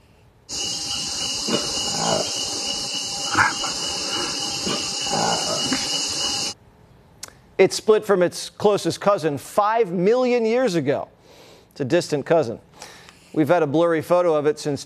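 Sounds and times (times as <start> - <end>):
constant loud hiss: 0.5 - 6.6
newly discovered monkey species call: 0.5 - 6.6
speech: 7.6 - 11.2, 11.8 - 12.7, 13.3 - 14.8.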